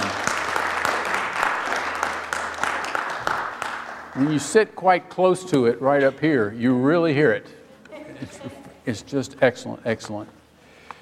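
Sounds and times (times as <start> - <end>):
audience applause: 0.0 - 4.6
speech: 4.2 - 7.6, 8.2 - 10.4.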